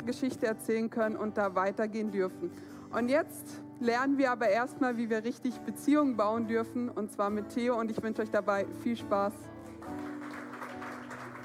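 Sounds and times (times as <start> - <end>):
speech: 0.0 - 10.0
audience applause: 9.8 - 11.4.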